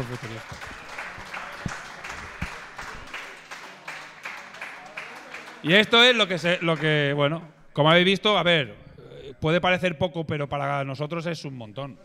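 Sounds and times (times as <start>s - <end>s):
speech: 0.0s - 0.8s, 5.6s - 8.8s, 9.4s - 12.0s
audience applause: 0.0s - 7.0s.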